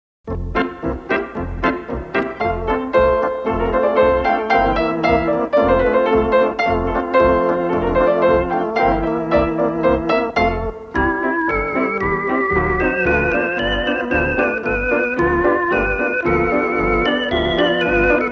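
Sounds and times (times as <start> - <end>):
instrumental music: 0.3 - 18.3.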